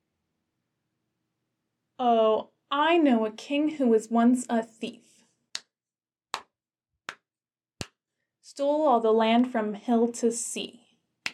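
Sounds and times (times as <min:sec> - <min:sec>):
speech: 0:02.0 - 0:05.1, 0:08.6 - 0:10.8
hand claps keeping time to a playground rhyme: 0:05.6 - 0:06.5, 0:07.1 - 0:08.0.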